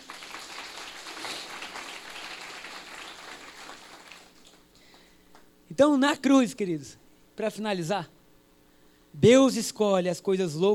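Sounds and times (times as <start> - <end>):
audience applauding: 0.0 - 5.1
speech: 5.8 - 8.2, 9.2 - 10.7.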